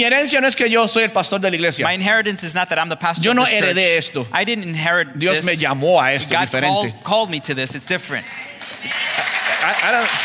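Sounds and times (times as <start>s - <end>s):
speech: 0.0s - 10.2s
audience applauding: 8.3s - 10.2s.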